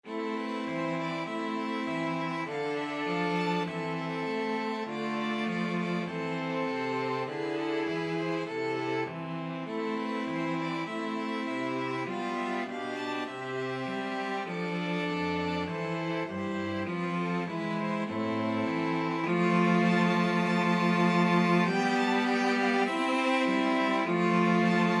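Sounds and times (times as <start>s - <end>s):
string quartet playing a national anthem: 0.0s - 24.9s.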